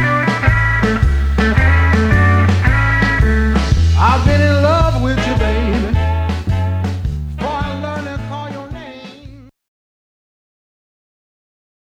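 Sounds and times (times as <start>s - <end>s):
blues music: 0.0s - 9.5s
drums: 0.0s - 9.5s.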